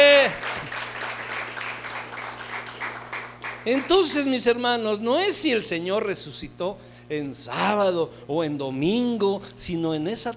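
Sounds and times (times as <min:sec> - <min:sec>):
audience applause: 0:00.0 - 0:04.2
speech: 0:03.6 - 0:10.3.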